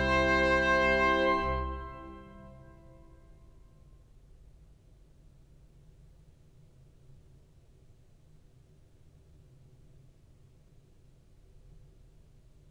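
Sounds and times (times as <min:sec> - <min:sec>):
organ in a warlike consort: 0:00.0 - 0:02.8
trumpet in a warlike consort: 0:00.0 - 0:03.2.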